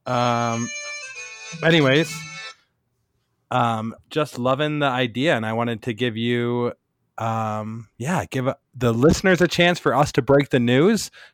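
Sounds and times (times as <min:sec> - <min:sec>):
speech: 0:00.0 - 0:00.8, 0:01.5 - 0:02.3, 0:03.5 - 0:11.3
phone ringing with incoming call: 0:00.5 - 0:02.6.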